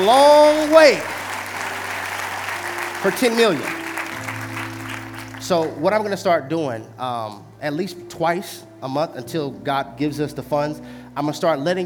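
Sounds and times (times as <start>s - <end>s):
speech: 0.0s - 1.2s, 3.0s - 3.8s, 5.4s - 11.8s
church audience clapping: 0.0s - 5.8s.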